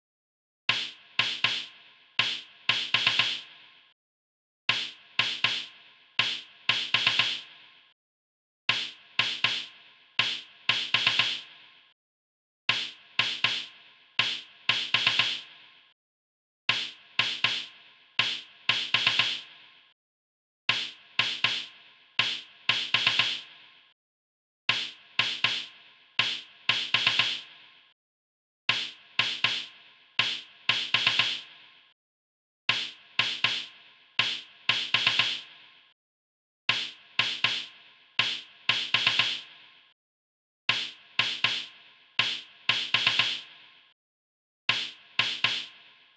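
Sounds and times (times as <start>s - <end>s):
snare drum: 0.7s - 3.4s, 4.7s - 7.5s, 8.7s - 11.4s, 12.7s - 15.4s, 16.7s - 19.5s, 20.7s - 23.4s, 24.7s - 27.5s, 28.7s - 31.5s, 32.7s - 35.5s, 36.7s - 39.5s, 40.7s - 43.5s, 44.7s - 45.7s.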